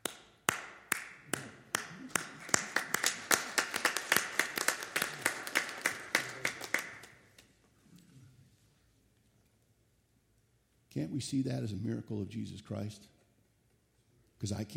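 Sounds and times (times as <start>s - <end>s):
audience applause: 1.3s - 7.2s
speech: 11.0s - 13.2s, 14.4s - 14.7s.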